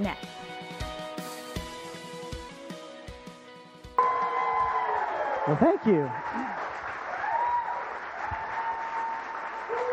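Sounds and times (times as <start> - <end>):
speech: 0.0 - 0.4, 5.5 - 6.5
audience applause: 4.0 - 9.9.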